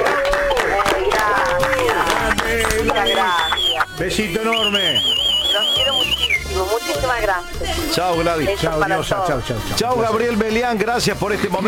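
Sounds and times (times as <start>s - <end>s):
applause: 0.0s - 4.0s
speech: 4.0s - 5.2s, 6.1s - 11.6s.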